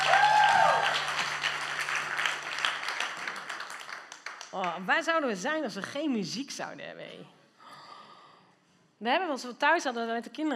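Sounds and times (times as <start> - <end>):
applause for the band: 0.0 - 4.9
speech: 4.8 - 7.4, 9.0 - 10.5.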